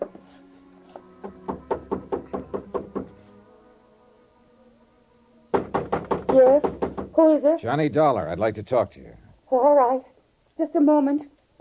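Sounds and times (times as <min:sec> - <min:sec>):
knocking on an apartment door: 0:01.1 - 0:03.2, 0:05.5 - 0:07.3
speech: 0:06.4 - 0:11.3.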